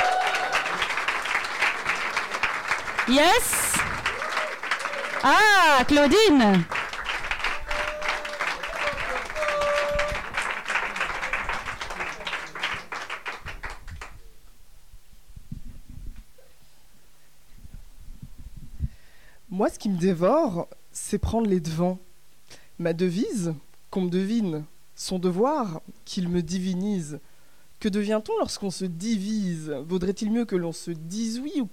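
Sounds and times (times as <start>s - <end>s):
audience applauding: 0.0s - 14.2s
speech: 3.1s - 3.6s, 5.2s - 6.8s, 19.6s - 22.1s, 22.8s - 31.7s.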